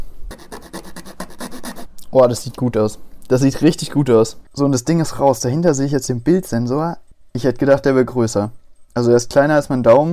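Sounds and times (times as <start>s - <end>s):
makeshift file scraping plastic: 0.3s - 2.0s
speech: 2.1s - 10.1s.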